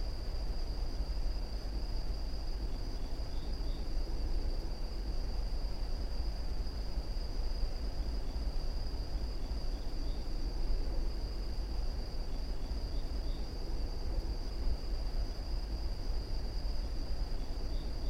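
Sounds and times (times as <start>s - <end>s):
forest ambience: 0.0s - 18.0s.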